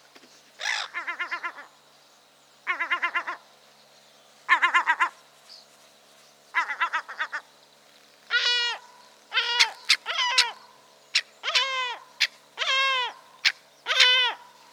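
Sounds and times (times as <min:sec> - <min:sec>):
Yellow-legged gull Larus michahellis guttural alarm calls: 0:00.6 - 0:01.7, 0:02.7 - 0:03.4, 0:04.5 - 0:05.2, 0:06.5 - 0:07.5, 0:08.3 - 0:14.6.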